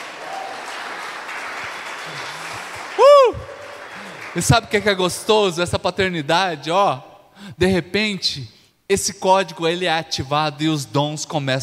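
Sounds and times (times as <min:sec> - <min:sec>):
audience applauding loudly: 0:00.0 - 0:05.3
speech: 0:04.4 - 0:11.6.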